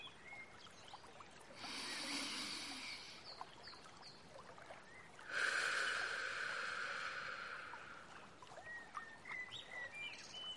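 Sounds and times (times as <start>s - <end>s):
birds chirping faintly: 0.0s - 10.5s
slow breathing in through the nose and out through the mouth: 1.6s - 3.4s, 5.3s - 8.3s.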